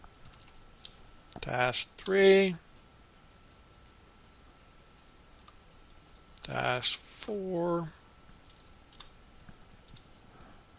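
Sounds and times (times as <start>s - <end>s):
typing on a computer keyboard: 0.1s - 1.0s, 8.4s - 9.2s
speech: 1.4s - 2.7s, 6.5s - 8.0s.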